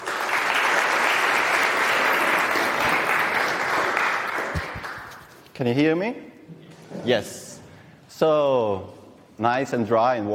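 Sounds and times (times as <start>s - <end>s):
conference audience clapping to welcome a speaker: 0.0s - 5.5s
speech: 5.6s - 6.3s, 7.0s - 7.5s, 8.2s - 10.3s.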